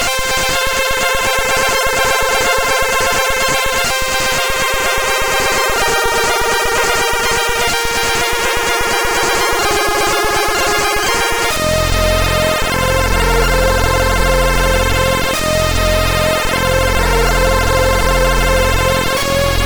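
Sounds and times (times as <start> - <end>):
high trance music: 0.0 - 19.6.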